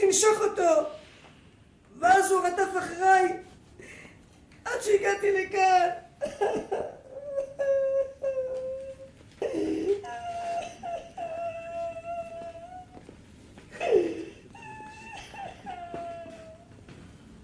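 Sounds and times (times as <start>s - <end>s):
speech: 0.1s - 1.0s, 2.0s - 3.5s, 4.7s - 7.0s
person sobbing after being chased by a dog: 6.2s - 13.0s, 13.7s - 16.7s.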